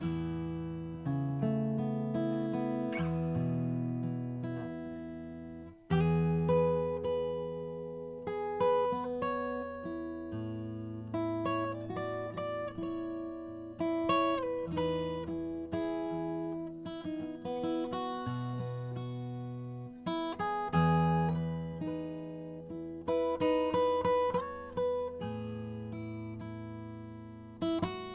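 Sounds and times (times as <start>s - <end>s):
custom Madagascar rosewood acoustic guitar: 0.0s - 28.1s.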